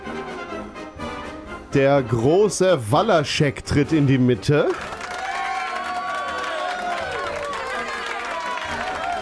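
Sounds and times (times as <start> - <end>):
speech: 1.7 - 5.0
audience applause: 4.6 - 9.2.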